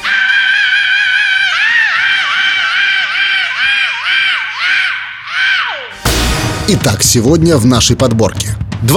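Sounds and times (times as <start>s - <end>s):
heavy metal singer's long sustained scream: 0.0s - 6.0s
speech: 6.7s - 8.9s.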